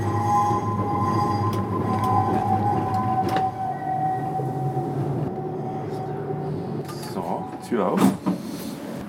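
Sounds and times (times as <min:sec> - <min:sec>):
tram electric motor whine parking at the depot: 0:00.0 - 0:09.0
speech: 0:07.7 - 0:08.2.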